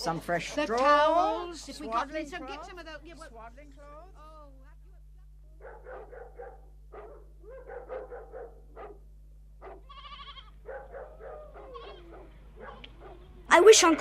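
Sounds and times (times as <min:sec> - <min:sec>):
speech: 0:00.0 - 0:04.6, 0:13.5 - 0:13.9
sheep bleating: 0:09.6 - 0:12.3.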